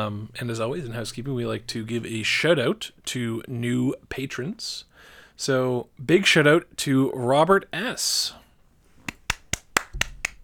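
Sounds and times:
speech: 0.0s - 8.4s
hand claps: 9.0s - 10.4s.

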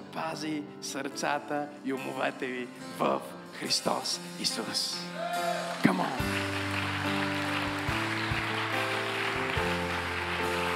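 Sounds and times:
speech: 0.2s - 6.4s
crowd applause: 5.2s - 10.7s
sustained keyboard chords: 6.1s - 10.7s.

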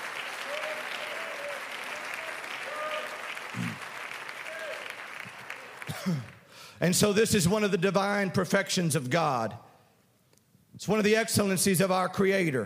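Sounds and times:
audience clapping hands: 0.0s - 6.6s
speech: 6.0s - 9.7s, 10.8s - 12.6s.

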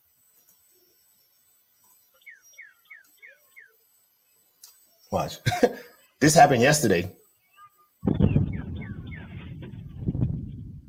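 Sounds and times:
faint bird chirps: 0.8s - 5.2s, 7.3s - 10.8s
speech: 5.1s - 7.2s
sonic boom from jets: 8.0s - 10.7s.

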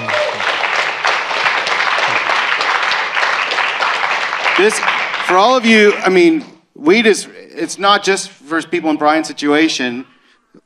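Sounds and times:
audience applause: 0.0s - 6.4s
speech: 4.6s - 10.2s.

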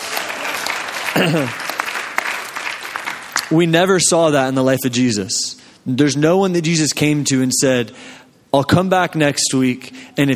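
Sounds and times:
audience clapping and cheering: 0.0s - 3.7s
speech: 1.2s - 1.6s, 3.5s - 10.3s.

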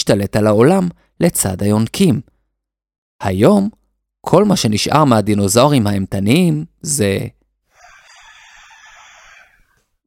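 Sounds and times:
speech: 0.0s - 2.3s, 3.2s - 7.4s
rooster crowing: 7.7s - 9.8s.

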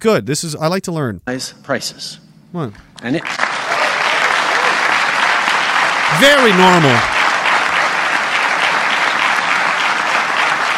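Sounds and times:
speech: 0.0s - 3.4s, 6.1s - 7.2s
audience applause: 3.1s - 10.7s.

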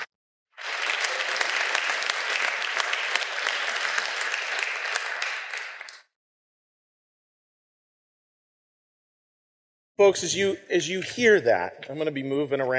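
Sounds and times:
audience applause: 0.6s - 6.1s
speech: 10.0s - 12.7s.

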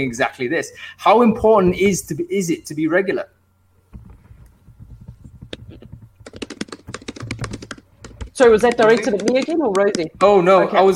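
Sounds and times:
speech: 0.0s - 3.4s, 8.4s - 10.9s
typing on a computer keyboard: 4.0s - 10.2s.

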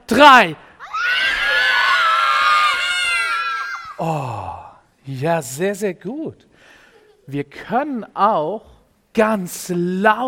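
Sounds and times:
speech: 0.1s - 1.4s, 4.0s - 10.2s
audience yelling and screaming at full volume: 0.8s - 4.0s.

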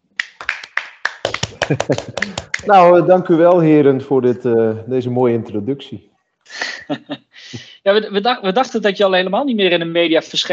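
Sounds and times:
hand claps: 0.1s - 3.1s
laughter: 1.3s - 5.9s, 6.5s - 7.2s
speech: 1.6s - 6.1s, 6.9s - 10.5s.

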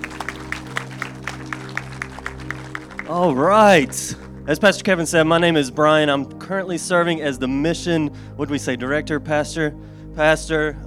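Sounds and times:
church congregation clapping during a Labor Day service: 0.0s - 4.5s
speech: 3.1s - 10.8s.

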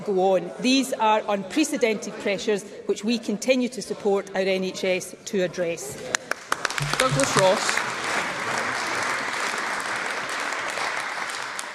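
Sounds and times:
speech: 0.0s - 6.2s, 7.0s - 7.9s
parliament members clapping: 6.1s - 11.7s.

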